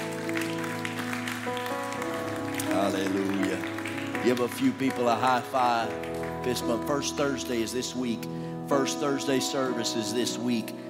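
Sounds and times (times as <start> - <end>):
audience clapping: 0.0 - 7.8
speech: 4.2 - 10.8.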